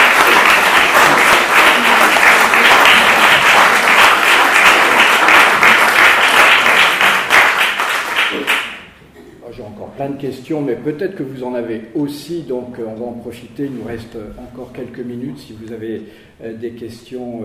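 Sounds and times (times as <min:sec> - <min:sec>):
audience applause: 0:00.0 - 0:08.9
speech: 0:10.0 - 0:17.4.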